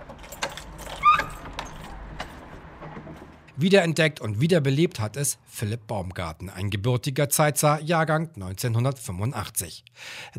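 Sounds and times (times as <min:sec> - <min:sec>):
keys jangling: 0:00.0 - 0:02.3
speech: 0:03.6 - 0:10.3.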